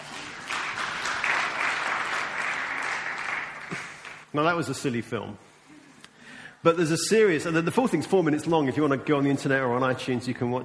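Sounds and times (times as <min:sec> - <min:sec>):
round of applause: 0:00.0 - 0:04.3
speech: 0:04.3 - 0:05.5, 0:06.6 - 0:10.6.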